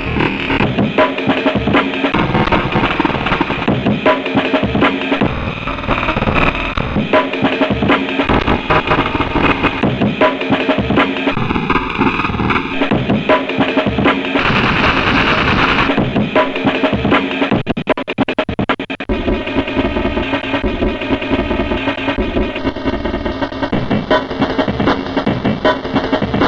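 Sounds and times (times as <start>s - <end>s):
drum break: 0.0s - 26.4s.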